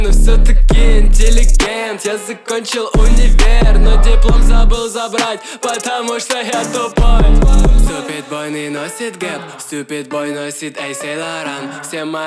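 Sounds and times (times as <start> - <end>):
31 33 35Hz low bass tones: 0.0 - 1.6, 3.0 - 4.8, 7.0 - 7.9.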